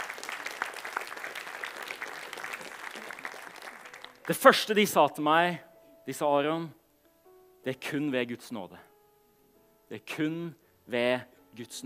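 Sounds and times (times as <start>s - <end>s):
audience applause: 0.0s - 4.4s
speech: 4.3s - 6.8s, 7.6s - 8.9s, 9.9s - 11.8s.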